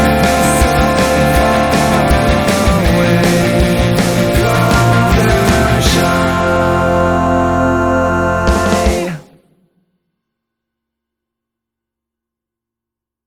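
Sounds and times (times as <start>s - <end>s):
karaoke singing: 0.0s - 9.4s.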